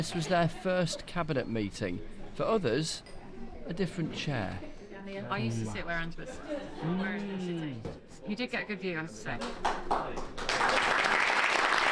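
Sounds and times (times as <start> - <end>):
speech: 0.0 - 10.8
applause around a cabinet meeting table greeting a new leader: 9.3 - 11.9.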